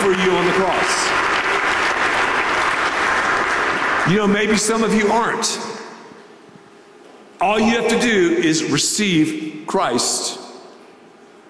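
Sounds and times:
church congregation round of applause: 0:00.0 - 0:05.2
speech: 0:04.1 - 0:05.8, 0:07.4 - 0:10.2.

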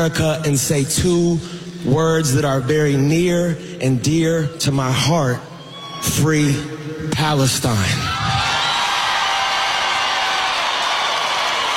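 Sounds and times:
speech: 0:00.0 - 0:08.4
large crowd cheering in a stadium: 0:08.0 - 0:11.7.

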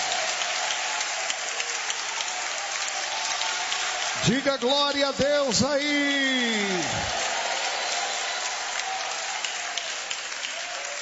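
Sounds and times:
audience applauding: 0:00.0 - 0:11.0
speech: 0:04.2 - 0:07.2.

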